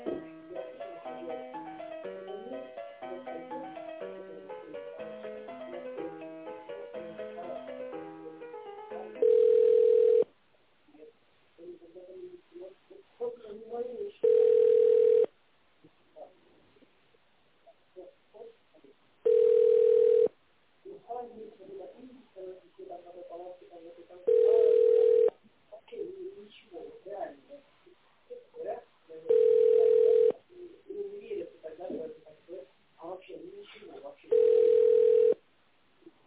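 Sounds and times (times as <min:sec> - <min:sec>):
music: 0:00.0 - 0:09.4
telephone ringback tone beeps: 0:09.2 - 0:10.3, 0:14.2 - 0:15.3, 0:19.3 - 0:20.3, 0:24.3 - 0:25.3, 0:29.3 - 0:30.4, 0:34.3 - 0:35.4.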